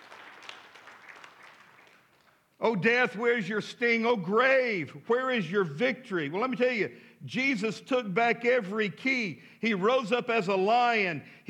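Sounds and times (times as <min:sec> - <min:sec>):
audience clapping: 0:00.0 - 0:02.6
speech: 0:02.6 - 0:11.4.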